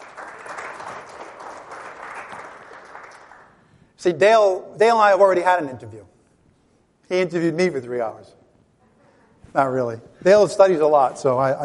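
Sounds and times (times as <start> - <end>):
round of applause: 0.0 - 3.6
speech: 4.0 - 6.1, 7.1 - 8.4, 9.5 - 11.6.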